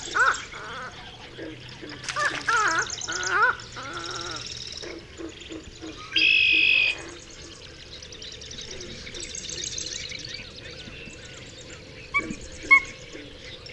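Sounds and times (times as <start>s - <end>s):
Pied-billed Grebe Podilymbus podiceps: 0.0s - 7.2s.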